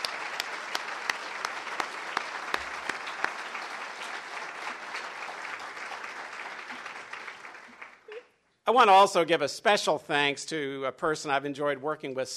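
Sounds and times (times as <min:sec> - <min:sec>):
audience applause: 0:00.0 - 0:08.1
speech: 0:08.7 - 0:12.3.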